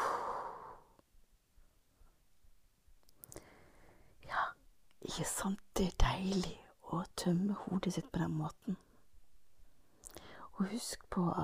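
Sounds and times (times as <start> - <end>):
slow deep exhalation: 0.0 - 1.0
speech: 5.2 - 8.9, 10.6 - 11.4.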